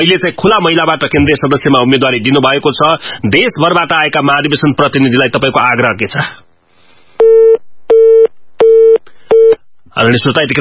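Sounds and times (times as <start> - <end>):
speech: 0.0 - 6.4, 10.0 - 10.5
telephone busy tone after a dropped call to a radio guest: 7.2 - 9.6.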